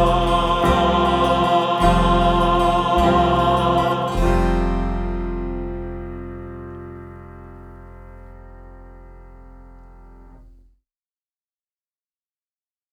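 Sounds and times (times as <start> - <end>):
gospel acclamation singing: 0.0 - 7.5.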